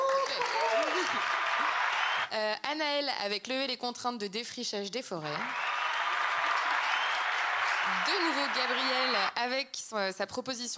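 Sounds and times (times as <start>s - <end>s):
audience applause at a public event voting on proposals: 0.0s - 2.3s, 5.4s - 9.4s
speech: 2.3s - 5.6s, 7.9s - 10.7s.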